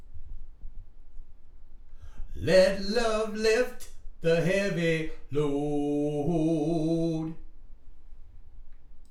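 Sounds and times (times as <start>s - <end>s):
person singing: 2.4s - 7.4s.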